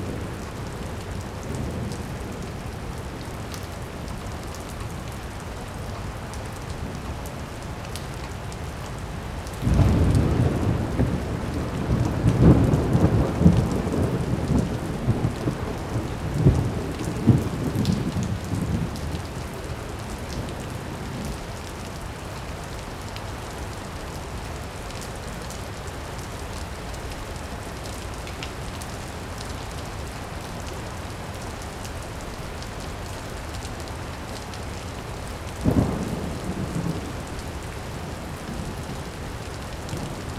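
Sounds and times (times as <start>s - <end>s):
rain: 0.0s - 40.3s
thunder: 9.6s - 18.7s.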